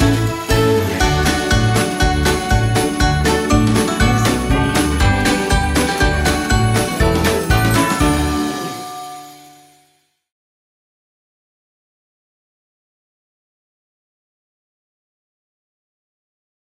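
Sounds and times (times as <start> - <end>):
Christmas song: 0.0 - 10.1.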